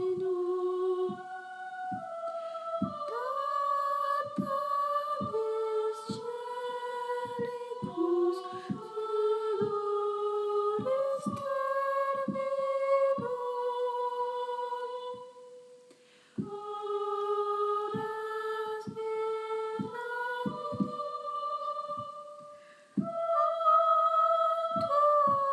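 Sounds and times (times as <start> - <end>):
tenor singing: 0.0 - 25.5.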